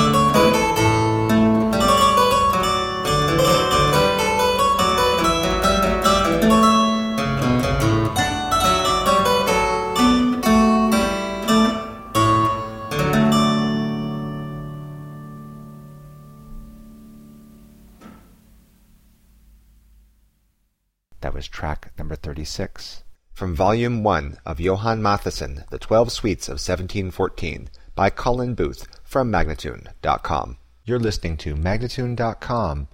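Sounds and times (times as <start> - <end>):
minuet in E flat major: 0.0 - 18.9
person speaking: 21.1 - 32.9.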